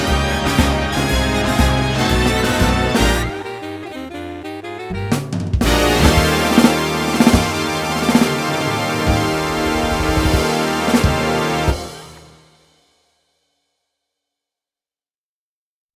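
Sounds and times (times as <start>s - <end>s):
big band: 0.0s - 12.8s.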